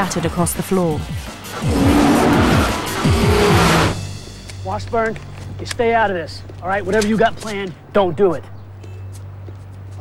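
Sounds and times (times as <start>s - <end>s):
speech: 0.0s - 2.2s, 4.6s - 8.5s
BMW tires squealing and skidding: 0.0s - 4.3s
BMW car engine revving in Grand Central Station: 0.0s - 4.4s.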